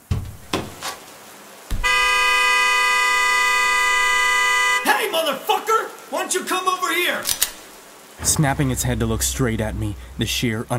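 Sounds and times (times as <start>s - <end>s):
dull thumps and knocks: 0.0s - 1.0s
car horn blaring: 1.8s - 4.9s
speech: 5.2s - 7.5s, 8.2s - 10.7s.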